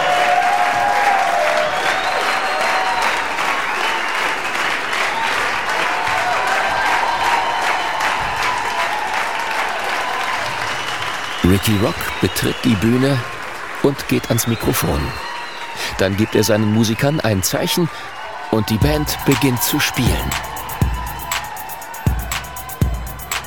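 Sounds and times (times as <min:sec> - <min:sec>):
large audience clapping and cheering: 0:00.0 - 0:23.4
whistles: 0:01.2 - 0:05.5, 0:10.4 - 0:23.4
speech: 0:11.6 - 0:20.5.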